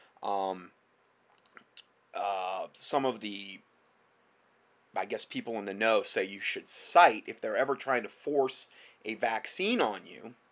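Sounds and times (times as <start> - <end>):
speech: 0.2 - 0.8, 2.7 - 3.7, 5.0 - 10.4
computer mouse clicks opening a file: 1.3 - 1.9.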